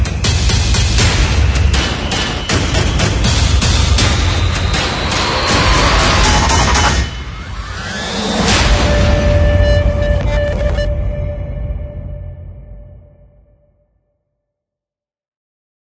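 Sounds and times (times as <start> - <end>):
hybrid trailer percussion: 0.0 - 13.4
hybrid trailer sound effects: 2.4 - 13.3.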